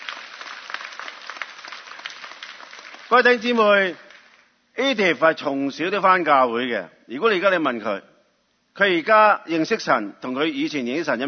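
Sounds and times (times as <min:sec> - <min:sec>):
audience applause: 0:00.0 - 0:04.4
speech: 0:03.1 - 0:04.0, 0:04.8 - 0:08.1, 0:08.8 - 0:11.2.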